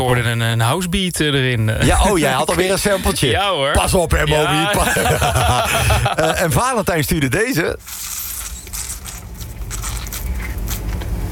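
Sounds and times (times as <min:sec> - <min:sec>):
speech: 0:00.0 - 0:08.2
laughter: 0:04.2 - 0:06.6
last bit of orange squeezed into a glass: 0:07.8 - 0:11.0.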